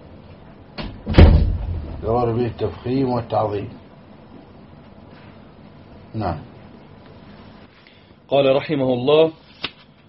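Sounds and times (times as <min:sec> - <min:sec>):
door pushed shut with a rubbing swish and low thud: 0:00.8 - 0:02.2
speech: 0:02.0 - 0:03.8, 0:06.1 - 0:06.5, 0:08.3 - 0:09.4.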